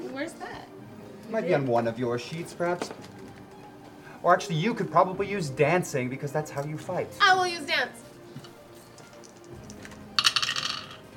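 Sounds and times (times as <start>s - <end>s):
speech: 0.2s - 3.2s, 4.2s - 8.0s
dice rattling across a hard surface: 9.2s - 11.0s.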